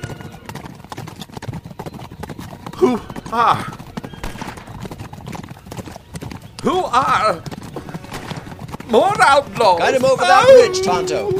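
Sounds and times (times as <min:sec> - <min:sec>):
horses galloping at top speed: 0:00.0 - 0:11.3
horse whinnying: 0:02.6 - 0:06.0, 0:06.6 - 0:11.3
speech: 0:02.8 - 0:03.8, 0:06.6 - 0:07.5, 0:08.9 - 0:11.3.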